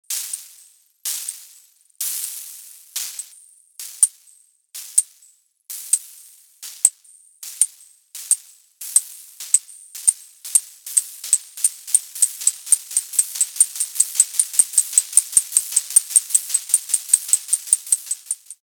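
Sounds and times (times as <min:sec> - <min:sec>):
shaker: 0:00.1 - 0:18.6.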